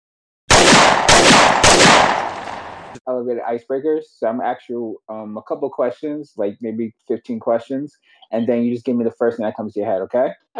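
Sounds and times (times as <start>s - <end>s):
gunshot blasts sound effect: 0.5s - 3.0s
speech: 3.0s - 10.5s.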